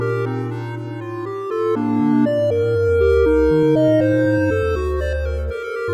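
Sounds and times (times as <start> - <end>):
synthesizer music: 0.2 - 5.9.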